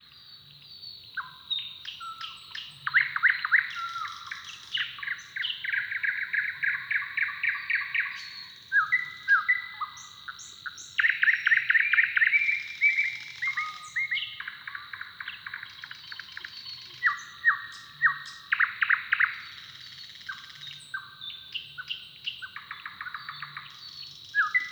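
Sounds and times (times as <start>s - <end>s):
bird song: 0.0s - 24.7s.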